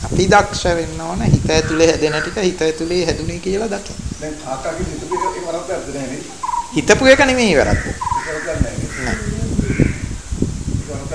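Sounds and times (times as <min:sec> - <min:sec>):
speech: 0:00.2 - 0:09.2
crow cawing outside: 0:01.6 - 0:02.4, 0:05.1 - 0:05.6, 0:06.2 - 0:10.2.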